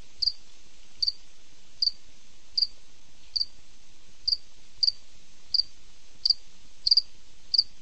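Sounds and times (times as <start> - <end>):
cricket chirping: 0.2 - 0.4, 1.0 - 1.2, 1.8 - 2.7, 3.3 - 3.5, 4.3 - 7.7.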